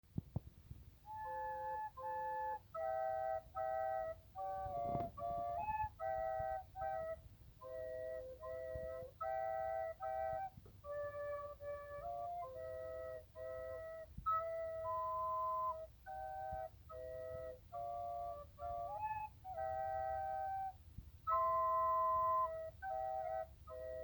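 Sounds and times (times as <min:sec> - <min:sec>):
flute: 0:01.0 - 0:24.0.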